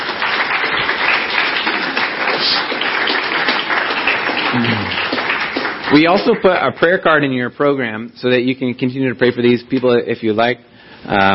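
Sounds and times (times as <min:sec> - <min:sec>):
audience clapping: 0:00.0 - 0:07.3
speech: 0:05.9 - 0:11.3.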